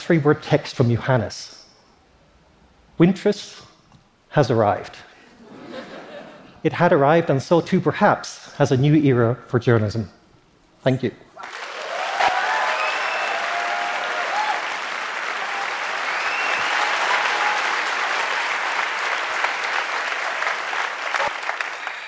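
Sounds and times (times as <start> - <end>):
speech: 0.1 - 1.6, 3.0 - 3.7, 4.3 - 5.1, 6.6 - 10.2, 10.8 - 11.5
laughter: 5.4 - 6.6
audience applause: 11.4 - 22.0.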